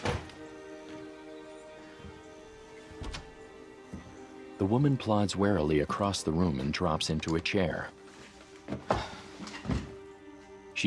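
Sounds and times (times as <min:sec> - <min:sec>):
cabin door swinging shut: 0:00.0 - 0:00.4, 0:03.0 - 0:03.4
speech: 0:04.6 - 0:08.0.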